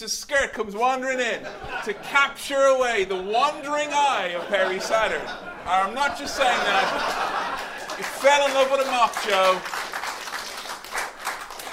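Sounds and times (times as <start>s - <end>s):
speech: 0.0s - 7.4s, 8.2s - 9.8s
laughter: 1.4s - 9.7s
crowd applauding: 6.4s - 11.7s.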